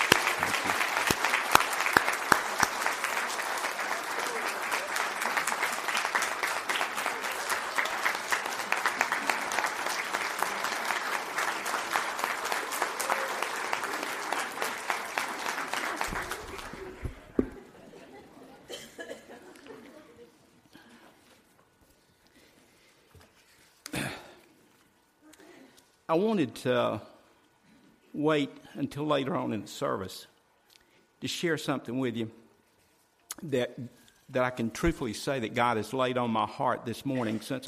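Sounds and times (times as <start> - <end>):
audience applause: 0.0 - 17.9
laughter: 12.9 - 20.5
speech: 26.1 - 27.1, 28.2 - 30.3, 31.2 - 32.4, 33.4 - 37.6.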